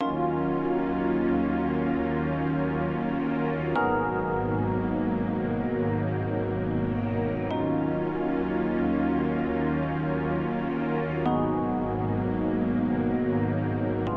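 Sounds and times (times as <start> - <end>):
R&B music: 0.0 - 14.1.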